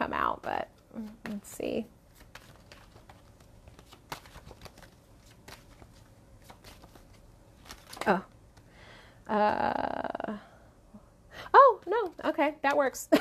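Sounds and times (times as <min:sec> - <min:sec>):
speech: 0:00.2 - 0:02.0, 0:08.0 - 0:08.3, 0:09.3 - 0:10.0, 0:11.8 - 0:13.1
deck of cards being shuffled: 0:00.4 - 0:08.7.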